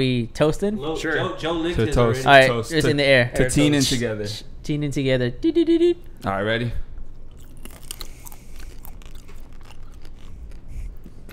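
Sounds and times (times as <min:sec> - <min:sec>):
speech: 0:00.0 - 0:06.8
chewing a crunchy grape-flavoured treat: 0:07.2 - 0:11.3.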